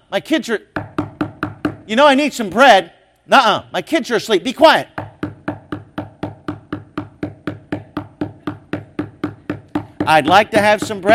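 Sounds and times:
speech: 0.1s - 1.0s, 1.9s - 4.9s, 10.1s - 11.1s
knocking on a door: 0.8s - 1.8s, 5.0s - 11.1s.

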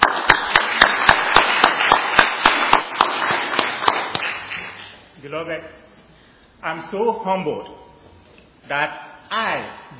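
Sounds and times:
audience applause: 0.0s - 4.8s
speech: 5.3s - 5.8s, 6.6s - 7.8s, 8.7s - 9.9s.

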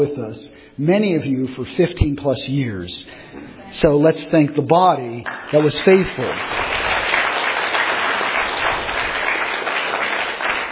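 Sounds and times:
speech: 0.0s - 6.8s
audience applause: 5.3s - 10.7s.

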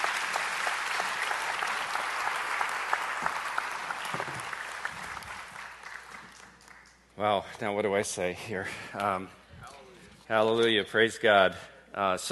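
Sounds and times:
audience applause for a speaker at a church gathering: 0.0s - 7.0s
speech: 7.2s - 9.4s, 10.3s - 12.3s.

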